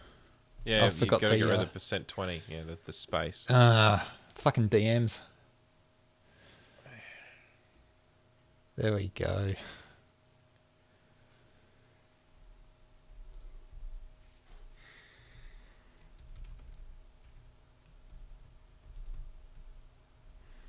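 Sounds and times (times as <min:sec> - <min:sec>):
low steady hum: 0:00.0 - 0:20.6
speech: 0:00.6 - 0:05.3, 0:08.8 - 0:09.8
typing on a computer keyboard: 0:16.0 - 0:19.8.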